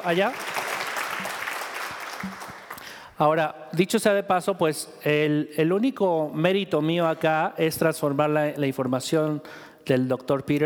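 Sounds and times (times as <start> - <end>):
speech: 0.0 - 0.6, 2.2 - 2.5, 3.2 - 10.6
audience applause: 0.0 - 3.0.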